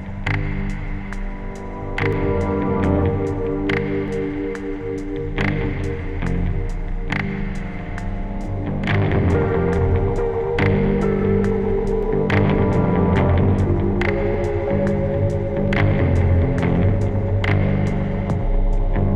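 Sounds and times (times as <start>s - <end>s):
lo-fi music: 0.0s - 19.1s.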